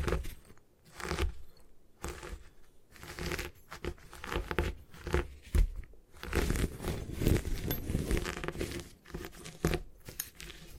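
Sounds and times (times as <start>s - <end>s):
gym chalk crushed and broken apart: 0.0s - 10.7s.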